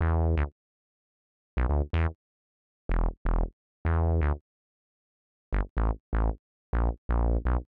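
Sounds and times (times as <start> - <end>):
resonant synth bass in E: 0.0 - 0.5, 2.9 - 4.4, 5.5 - 7.6.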